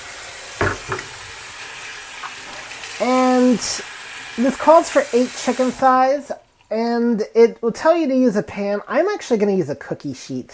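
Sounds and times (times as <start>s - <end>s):
running tap water for hand washing: 0.0s - 6.4s
speech: 3.0s - 10.5s.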